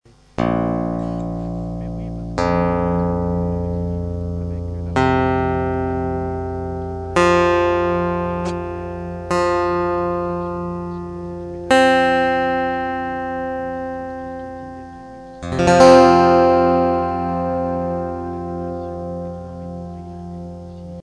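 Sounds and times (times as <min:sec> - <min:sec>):
instrument tuning: 0:00.1 - 0:21.0.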